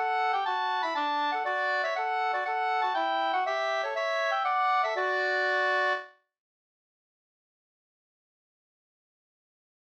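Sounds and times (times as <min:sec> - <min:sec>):
polska dance tune: 0:00.0 - 0:06.1.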